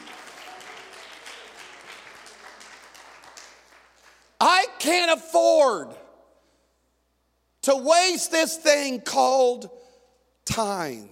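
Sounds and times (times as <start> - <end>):
audience clapping hands: 0.0 - 4.6
speech: 4.8 - 6.0, 7.6 - 9.8, 10.5 - 11.1.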